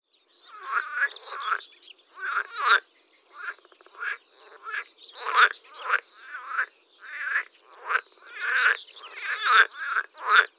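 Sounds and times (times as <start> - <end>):
water frog chorus croaking: 0.4 - 10.5.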